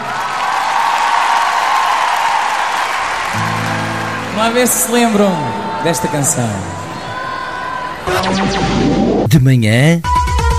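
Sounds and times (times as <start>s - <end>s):
audience applause: 0.0s - 8.1s
speech: 4.4s - 6.9s, 8.2s - 10.2s.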